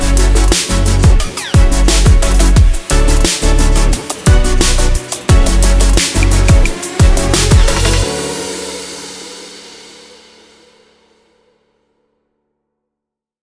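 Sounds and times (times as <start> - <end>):
dynamic sport future bass music: 0.0 - 9.1.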